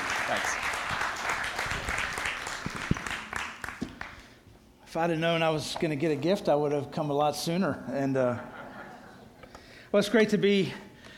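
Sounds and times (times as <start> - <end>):
audience applause: 0.0 - 4.2
speech: 0.3 - 0.7, 4.9 - 8.6, 9.9 - 10.9
laughter: 8.0 - 9.5.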